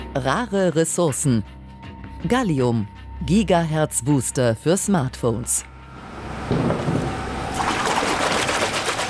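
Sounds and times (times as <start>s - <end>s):
speech: 0.2s - 1.6s, 2.2s - 5.7s
water sloshing and bubbling as metal blocks are lowered into a water bath: 5.8s - 9.0s.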